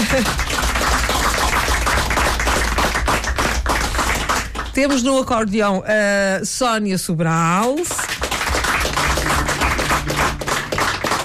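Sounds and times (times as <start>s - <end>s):
audience applause for a quartet: 0.0s - 5.2s, 8.0s - 11.2s
speech: 0.1s - 0.5s, 4.8s - 8.2s.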